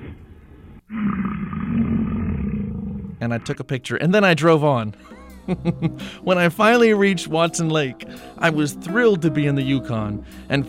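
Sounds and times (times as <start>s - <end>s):
large bull huffing: 0.0s - 3.2s
speech: 3.2s - 10.6s.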